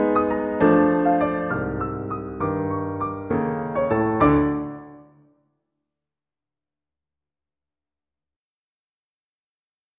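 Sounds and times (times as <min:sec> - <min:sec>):
piano: 0:00.0 - 0:05.4.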